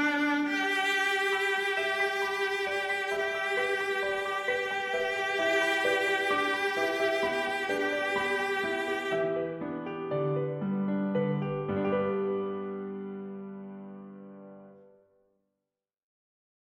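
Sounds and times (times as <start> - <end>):
viola: 0.0 - 10.2
piano: 0.0 - 15.3.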